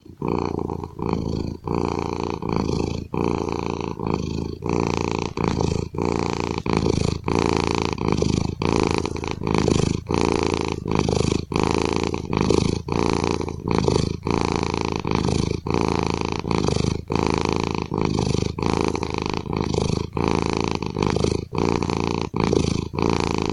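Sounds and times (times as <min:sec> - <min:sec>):
cat purring: 0:00.0 - 0:23.5.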